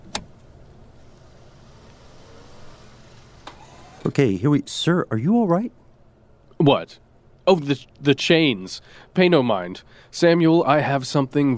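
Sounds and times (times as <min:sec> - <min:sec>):
car engine and road rumble at a drive-through: 0:00.1 - 0:04.0
speech: 0:04.0 - 0:05.8, 0:06.6 - 0:11.5.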